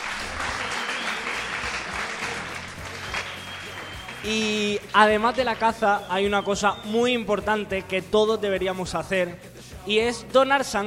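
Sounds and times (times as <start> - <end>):
audience applause: 0.0 - 6.9
speech: 4.2 - 10.8.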